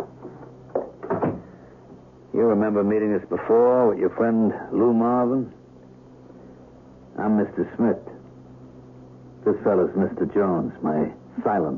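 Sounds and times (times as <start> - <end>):
apartment door shutting with soft thud: 0.7 - 1.5
speech: 2.4 - 5.6, 7.2 - 8.2, 9.5 - 11.7.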